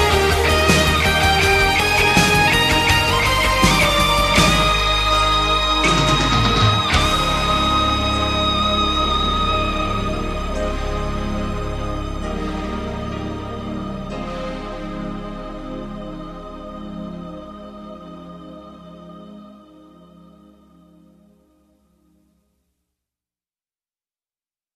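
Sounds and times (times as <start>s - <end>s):
guitar: 0.0s - 18.4s.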